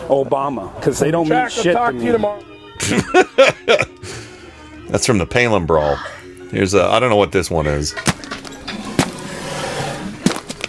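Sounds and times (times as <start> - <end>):
speech: 0.1 - 4.2, 4.9 - 8.3
laughter: 2.8 - 4.3
elephants pooping: 7.9 - 10.6.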